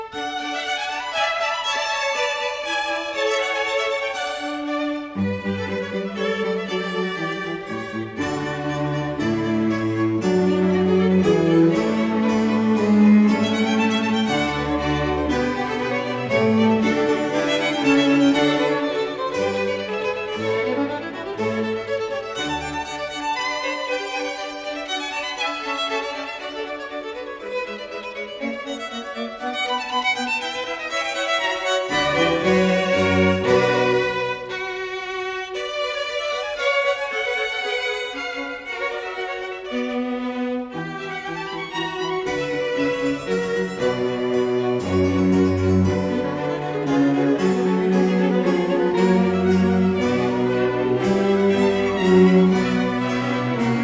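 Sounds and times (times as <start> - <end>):
allegro deciso piano concerto movement: 0.2 - 53.8.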